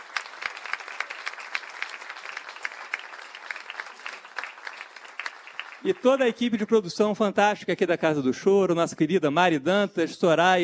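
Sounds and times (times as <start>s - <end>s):
audience applause: 0.0s - 6.7s
speech: 5.8s - 10.6s.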